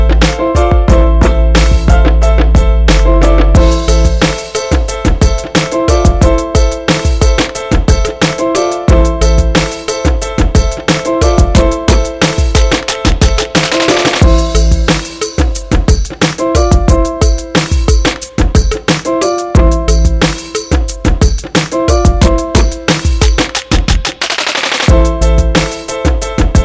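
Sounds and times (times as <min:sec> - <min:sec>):
boom bap beat: 0:00.0 - 0:26.6.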